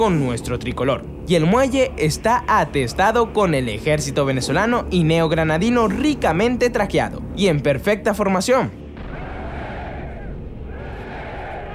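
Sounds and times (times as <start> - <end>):
speech: 0.0 - 8.8
cannon fire salute at Guayaquil: 8.9 - 11.7
crowd cheering for Bolívar: 9.0 - 11.7.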